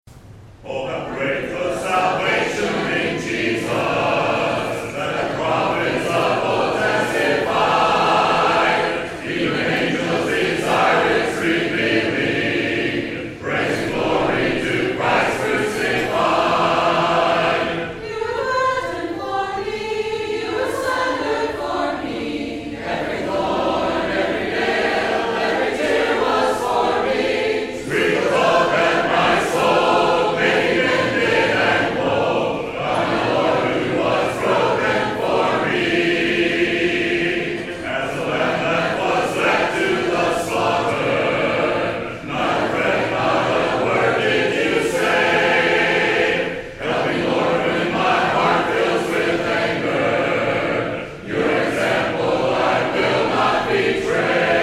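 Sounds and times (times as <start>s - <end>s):
a cappella hymn: 0.1s - 54.6s.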